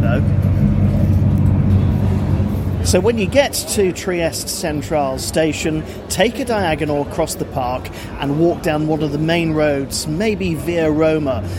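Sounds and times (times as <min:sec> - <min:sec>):
old refurbished train rumbling on board: 0:00.0 - 0:04.9
speech: 0:02.9 - 0:11.5.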